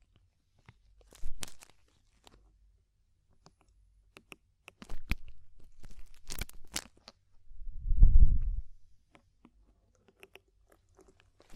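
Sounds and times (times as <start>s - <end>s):
ear cleaning crackles, scratches and crunchy clicks: 0.0s - 2.6s, 4.7s - 7.3s, 8.3s - 11.5s.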